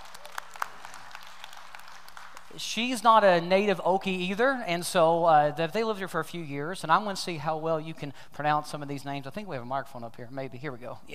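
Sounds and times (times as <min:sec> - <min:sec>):
audience applause: 0:00.0 - 0:02.6
speech: 0:02.5 - 0:11.1.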